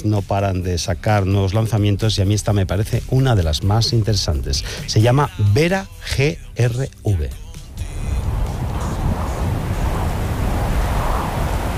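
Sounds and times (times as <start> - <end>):
speech: 0.0 - 7.4
ocean waves: 7.6 - 11.7.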